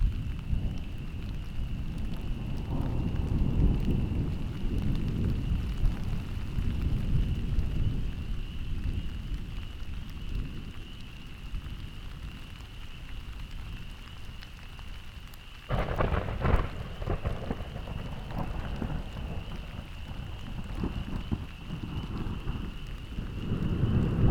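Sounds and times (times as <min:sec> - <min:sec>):
rolling thunder: 0:00.0 - 0:10.8, 0:15.7 - 0:24.2.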